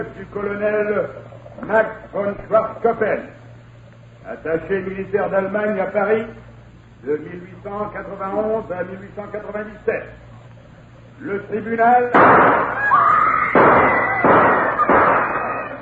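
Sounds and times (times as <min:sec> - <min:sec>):
speech: 0:00.0 - 0:03.4, 0:04.2 - 0:10.3, 0:11.2 - 0:12.9
gunshots in a courtroom during the Dreyfus trial: 0:12.2 - 0:12.8, 0:13.5 - 0:15.7.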